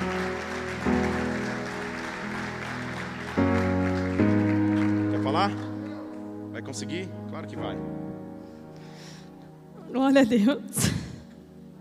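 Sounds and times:
audience applause: 0:00.0 - 0:06.4
speech: 0:05.4 - 0:05.7, 0:06.7 - 0:08.0, 0:09.9 - 0:11.0.

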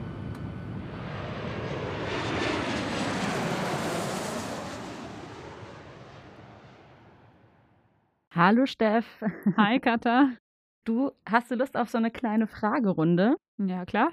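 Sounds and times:
airplane engine roaring during takeoff: 0:00.0 - 0:07.8
speech: 0:08.4 - 0:14.1.

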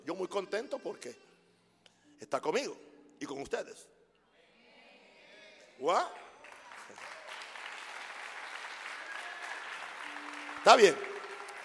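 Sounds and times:
speech: 0:00.2 - 0:01.2, 0:02.3 - 0:04.0, 0:05.8 - 0:06.2, 0:10.6 - 0:11.1
audience applause: 0:06.4 - 0:11.6.

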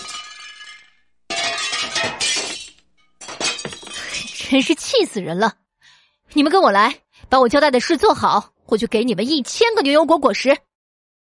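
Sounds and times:
vase and glasses smashing: 0:00.0 - 0:04.7
speech: 0:04.5 - 0:05.6, 0:06.3 - 0:10.7.

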